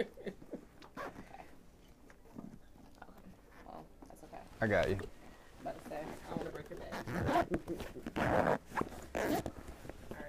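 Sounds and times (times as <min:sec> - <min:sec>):
speech: 0:00.0 - 0:00.4, 0:04.6 - 0:05.2, 0:06.3 - 0:08.6
zipper being zipped up: 0:00.9 - 0:01.4, 0:06.3 - 0:10.2.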